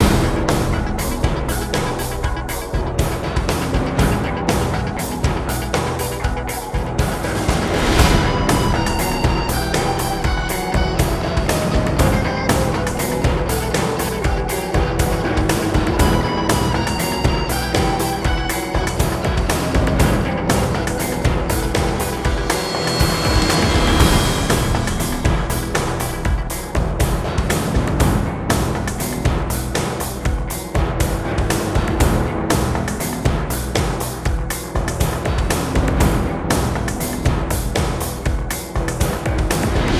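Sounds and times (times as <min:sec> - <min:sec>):
drums: 0:00.0 - 0:39.9
guitar: 0:00.0 - 0:39.9.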